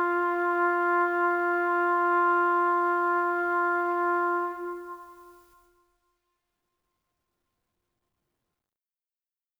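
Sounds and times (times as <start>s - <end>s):
trumpet bugle call: 0.0s - 5.6s.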